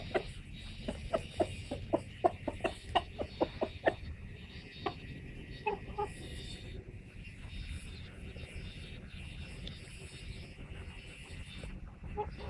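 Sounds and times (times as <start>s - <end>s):
chicken clucking: 0.0s - 6.6s, 11.6s - 12.4s.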